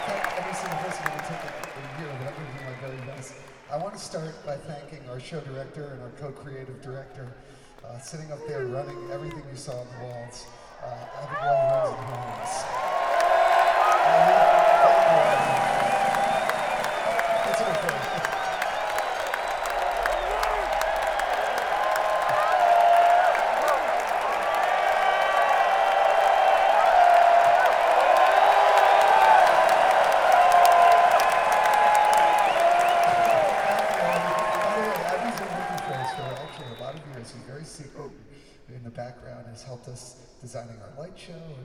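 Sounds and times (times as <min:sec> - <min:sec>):
crowd cheering and whooping: 0:00.0 - 0:03.2, 0:10.8 - 0:37.2
crowd applause: 0:00.0 - 0:04.5, 0:08.5 - 0:37.8
speech: 0:04.0 - 0:12.8, 0:14.1 - 0:14.5.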